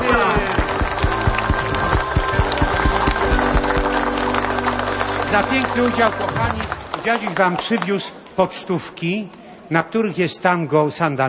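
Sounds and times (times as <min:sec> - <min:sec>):
applause for a priest: 0:00.0 - 0:08.4
speech: 0:05.3 - 0:11.2.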